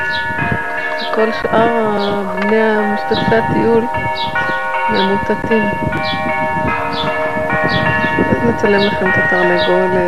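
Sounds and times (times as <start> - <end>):
church bells ringing for a holiday: 0.0 - 10.0
speech: 1.2 - 10.0.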